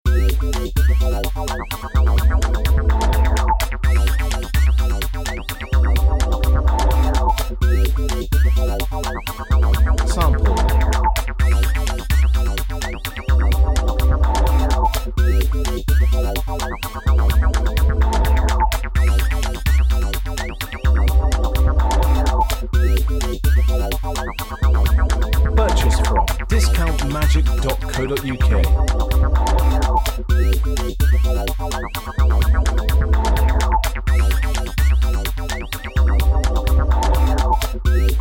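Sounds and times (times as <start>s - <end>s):
electro backing music: 0.1s - 38.1s.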